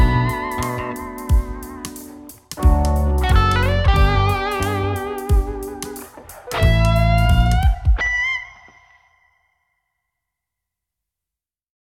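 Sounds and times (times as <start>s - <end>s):
groovy jam music: 0.0s - 8.6s.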